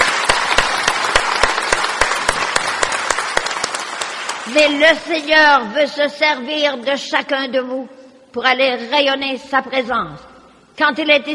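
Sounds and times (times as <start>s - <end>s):
audience applause: 0.0s - 4.6s
speech: 4.5s - 11.3s.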